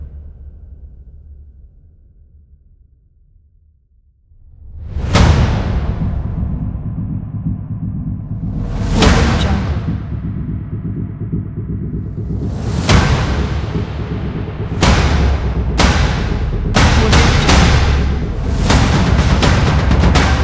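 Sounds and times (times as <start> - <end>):
action drums: 4.4 - 20.4.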